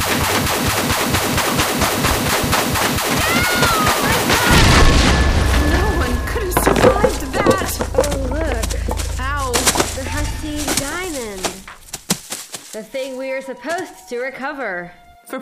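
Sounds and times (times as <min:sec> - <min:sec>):
rapid rattling run of sharp pulses: 0:00.0 - 0:12.6
agitated voices calling out: 0:03.2 - 0:11.8
explosion with heavy boom and lingering low rumble: 0:04.5 - 0:12.1
speech: 0:13.4 - 0:15.3.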